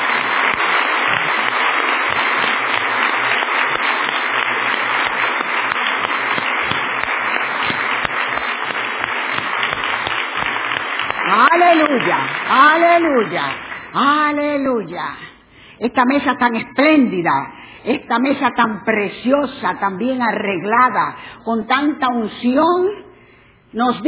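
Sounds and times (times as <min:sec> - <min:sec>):
audience applause: 0:00.0 - 0:14.0
speech: 0:13.0 - 0:23.0, 0:23.7 - 0:24.0.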